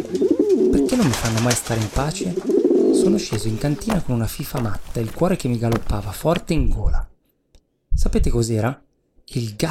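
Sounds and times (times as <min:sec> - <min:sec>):
pigeons cooing: 0:00.0 - 0:04.0
speech: 0:01.0 - 0:07.1, 0:08.0 - 0:09.6.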